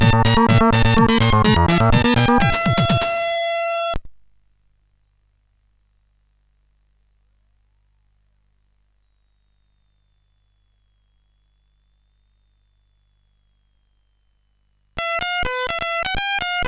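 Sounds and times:
SID CSG8580 chip music: 0.0 - 4.0, 15.0 - 16.6.

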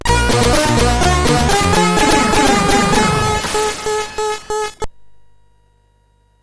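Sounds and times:
game music on SID CSG8580R5 chip: 0.0 - 4.9.

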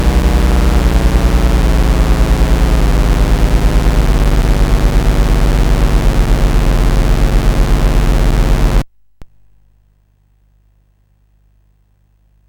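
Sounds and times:
SID CSG8580R5 chip music: 0.0 - 8.8.

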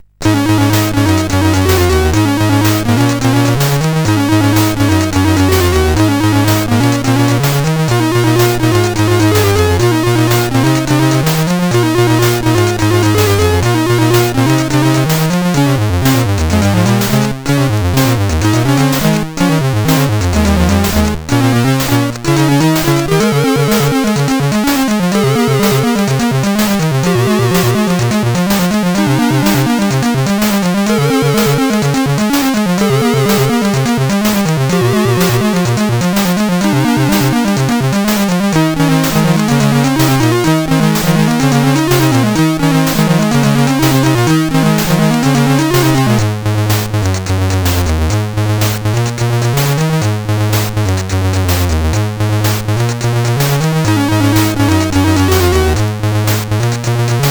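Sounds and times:
MOS 8580 SID chip game music: 0.0 - 57.2.

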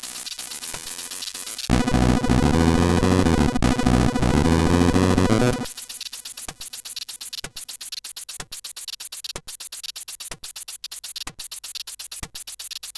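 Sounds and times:
Amiga remix on SID CSG8580R5 chip: 1.7 - 5.7.

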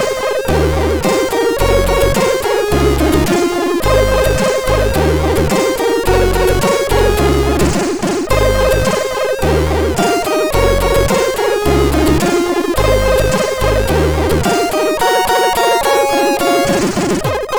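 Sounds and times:
Amiga MOS6581R4 SID chip sound: 0.0 - 17.4.

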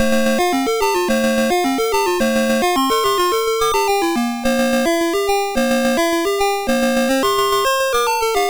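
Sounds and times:
MOS6581R2 chiptune music: 0.0 - 8.4.

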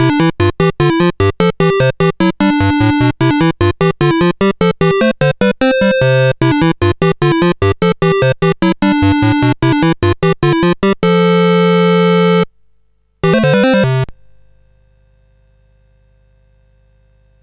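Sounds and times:
SID CSG8580R5 chip music: 0.0 - 12.5, 13.2 - 14.1.

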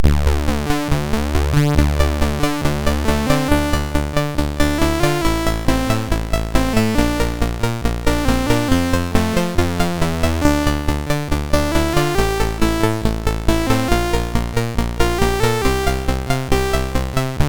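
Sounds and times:
chiptune on MOS6581R2 SID chip: 0.1 - 17.4.

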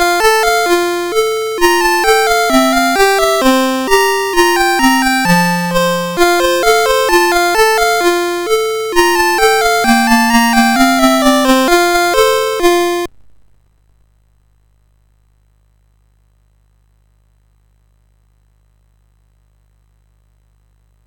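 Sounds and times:
MOS6581R4 SID chip game music: 0.0 - 13.1.

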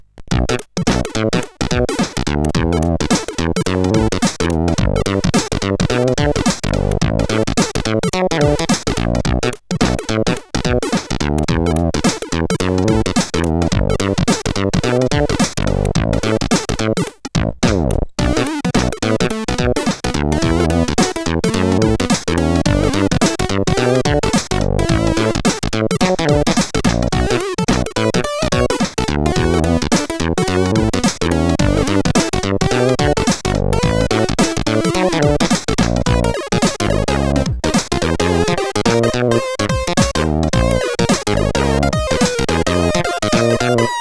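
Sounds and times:
CSG 8580 sound chip: 0.4 - 16.5, 17.7 - 43.9.

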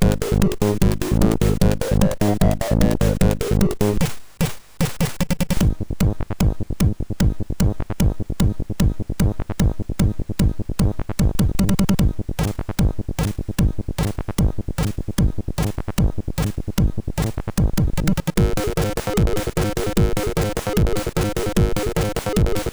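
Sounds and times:
brutal techno on a MOS6581R2 SID chip: 0.0 - 4.1, 5.5 - 22.7.

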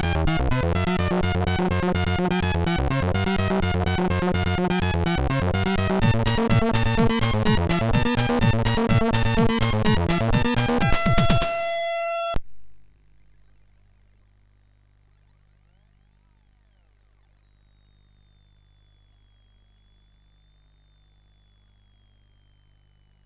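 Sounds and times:
techno noise from a MOS6581R3 sound chip: 0.0 - 12.4.

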